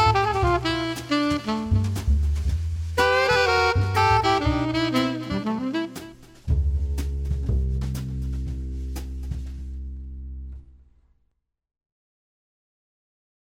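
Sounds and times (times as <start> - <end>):
swing saxophone: 0.0 - 9.4.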